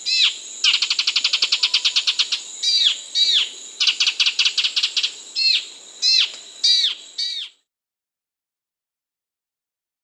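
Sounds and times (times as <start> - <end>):
Half-Collared Gnatwren Microbates cinereiventris calling in South America: 0.0 - 7.6.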